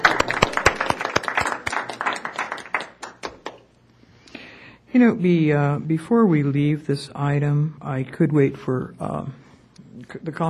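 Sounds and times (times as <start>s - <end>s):
scattered clapping from a small group: 0.0s - 3.7s
speech: 5.0s - 9.4s, 10.0s - 10.4s.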